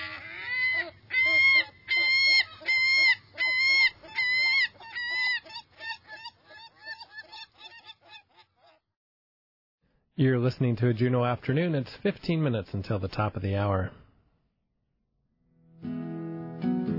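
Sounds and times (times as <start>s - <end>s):
herring gull calls: 0.0s - 8.8s
speech: 10.2s - 14.0s.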